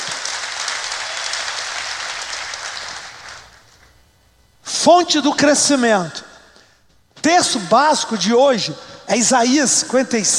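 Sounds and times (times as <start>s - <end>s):
audience applause: 0.0s - 3.6s
speech: 4.8s - 6.3s, 7.2s - 10.3s.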